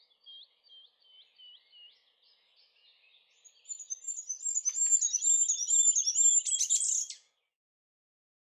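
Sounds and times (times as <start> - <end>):
treecreeper calling: 3.3 - 7.2.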